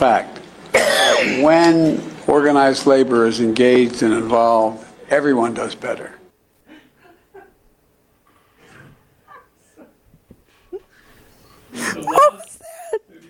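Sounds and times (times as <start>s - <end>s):
speech: 0.0s - 0.4s, 1.2s - 6.2s
heavy cough: 0.7s - 1.5s
laughter: 11.7s - 13.2s.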